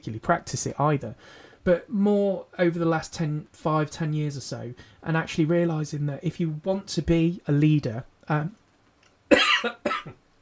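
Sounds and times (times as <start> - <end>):
speech: 0.0 - 8.6, 9.6 - 10.2
harsh coughing during a choking fit: 9.3 - 10.2.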